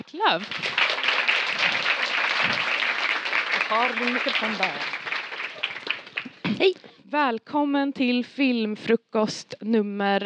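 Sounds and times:
speech: 0.1s - 1.0s, 3.7s - 5.1s, 6.6s - 10.2s
audience applause: 0.3s - 6.5s.

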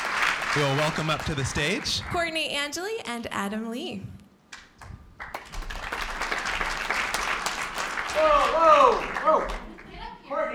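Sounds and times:
crowd clapping at a New Year stage event: 0.0s - 2.3s, 4.5s - 10.1s
speech: 0.5s - 4.2s, 8.2s - 9.6s.

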